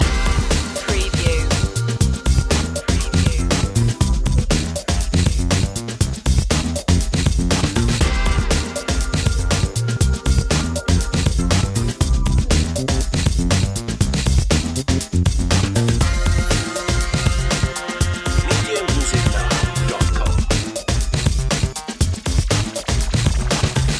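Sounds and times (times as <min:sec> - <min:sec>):
blues loop: 0:00.0 - 0:23.9.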